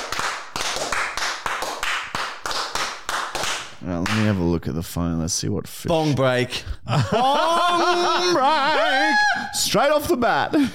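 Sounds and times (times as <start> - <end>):
round of applause: 0.0 - 4.3
speech: 3.9 - 10.7
laughter: 5.9 - 9.6.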